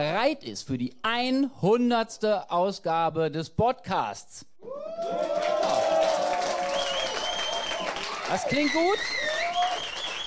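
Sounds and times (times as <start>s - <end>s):
speech: 0.0s - 5.5s, 8.3s - 9.3s
audience applause: 5.0s - 10.2s.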